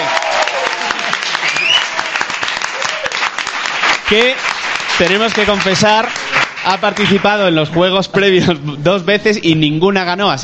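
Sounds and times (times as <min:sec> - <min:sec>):
group applauding: 0:00.0 - 0:08.0
speech: 0:04.1 - 0:10.4.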